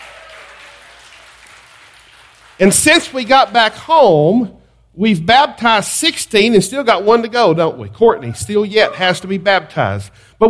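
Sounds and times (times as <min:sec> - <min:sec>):
audience clapping hands in praise: 0:00.0 - 0:03.8
speech: 0:02.6 - 0:10.4.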